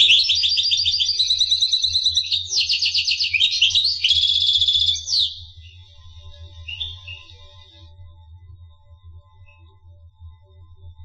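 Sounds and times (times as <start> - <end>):
finch twittering: 0.0 - 5.8, 6.6 - 7.4.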